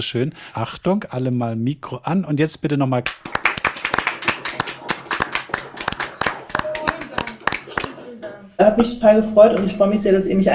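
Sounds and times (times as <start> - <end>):
speech: 0.0 - 3.4, 8.6 - 10.5
small group applauding: 3.1 - 8.4.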